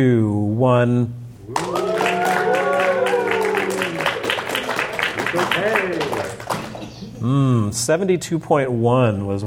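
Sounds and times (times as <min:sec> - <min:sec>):
speech: 0:00.0 - 0:01.6, 0:05.3 - 0:06.4, 0:07.2 - 0:09.4
crowd clapping politely: 0:01.5 - 0:07.1.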